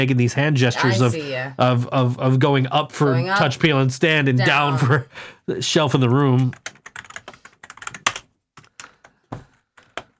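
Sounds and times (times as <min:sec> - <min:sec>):
speech: 0:00.0 - 0:06.8
typing on a computer keyboard: 0:06.4 - 0:10.1.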